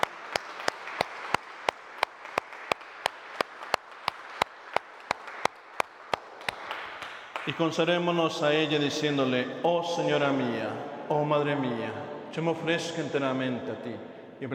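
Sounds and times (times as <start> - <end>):
audience applause: 0.0 - 7.6
speech: 7.4 - 14.5.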